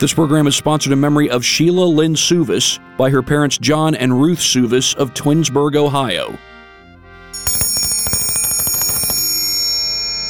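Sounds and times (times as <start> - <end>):
speech: 0.0 - 6.5
hand bell ringing: 7.4 - 10.2.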